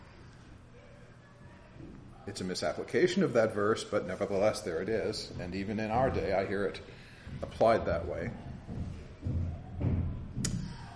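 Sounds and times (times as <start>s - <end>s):
speech: 2.3s - 8.8s
feet stamping in the next room: 4.4s - 10.9s.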